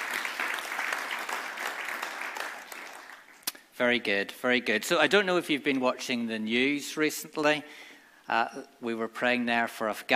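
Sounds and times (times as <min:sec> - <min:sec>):
audience applause: 0:00.0 - 0:03.4
speech: 0:03.8 - 0:10.1.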